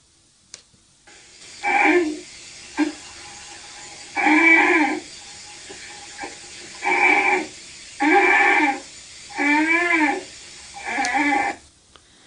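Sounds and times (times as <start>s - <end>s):
polar bear cub honking for its mother: 1.6s - 3.0s, 4.0s - 5.1s, 6.1s - 11.6s.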